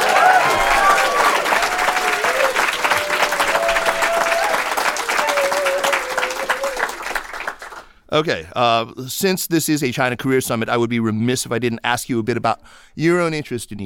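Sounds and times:
audience applause welcoming a speaker at a China career summit at Seneca: 0.0 - 7.9
speech: 8.1 - 13.8.

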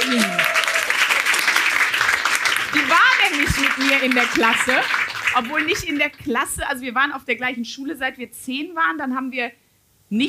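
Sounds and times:
audience applause: 0.0 - 6.2
speech: 2.8 - 10.2.

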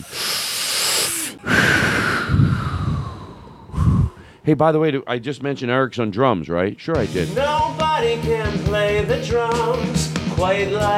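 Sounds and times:
deep breath drawn in: 0.0 - 4.5
speech: 4.5 - 10.9.

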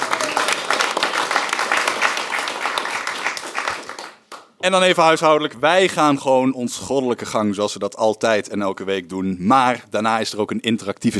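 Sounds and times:
audience applause: 0.0 - 4.4
speech: 4.6 - 11.1.

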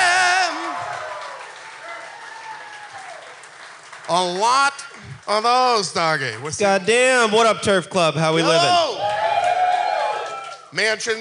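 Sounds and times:
audience applause: 0.0 - 6.5, 8.5 - 10.7
speech: 4.1 - 9.1, 10.7 - 11.1.

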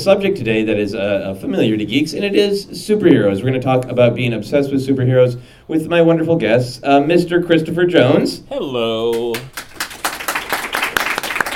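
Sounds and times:
speech: 0.0 - 9.6
audience applause: 9.0 - 11.5.

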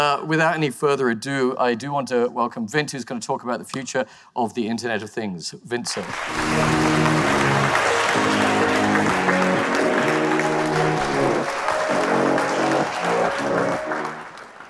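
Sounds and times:
speech: 0.0 - 8.6
audience clapping: 5.9 - 14.6
bright instrumental tune with repeating chords: 6.2 - 14.4.

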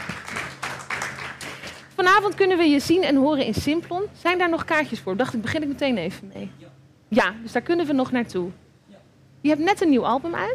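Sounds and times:
applause: 0.0 - 1.9
speech: 2.0 - 8.6, 9.4 - 10.5.

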